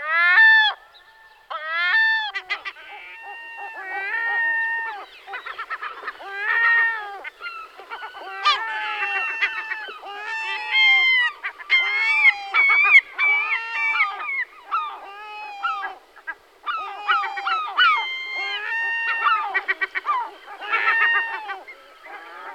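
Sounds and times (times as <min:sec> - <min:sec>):
Herring gull laughing calls and wails: 0:01.9 - 0:22.5.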